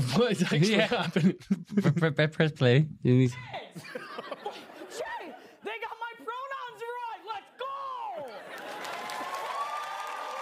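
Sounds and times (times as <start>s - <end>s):
laughter: 0.0s - 2.3s, 3.6s - 5.5s, 8.3s - 9.3s
speech: 0.2s - 4.2s
crowd cheering and applauding: 8.2s - 10.3s.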